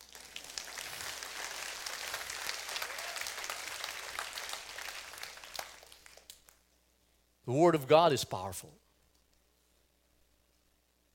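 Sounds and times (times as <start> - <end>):
audience clapping: 0.0 - 6.6
speech: 7.5 - 8.8.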